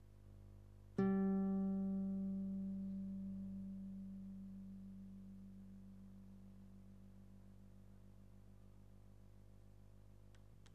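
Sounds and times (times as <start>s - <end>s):
guitar: 1.0s - 7.6s.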